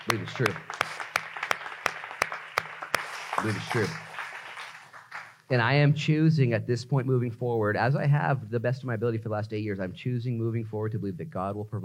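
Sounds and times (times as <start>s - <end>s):
audience clapping: 0.0s - 5.5s
speech: 0.1s - 1.0s, 3.4s - 4.1s, 5.5s - 11.8s.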